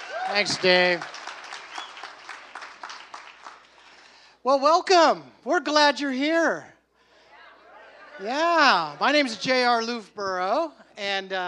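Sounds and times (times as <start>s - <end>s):
light audience clapping for a speaker: 0.0s - 4.2s
speech: 0.3s - 1.2s, 4.4s - 6.7s, 8.2s - 11.4s.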